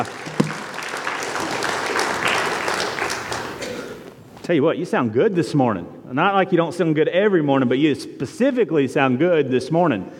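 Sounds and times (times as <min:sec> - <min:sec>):
speech: 0:00.0 - 0:00.2, 0:04.5 - 0:10.1
people clapping: 0:00.0 - 0:03.7.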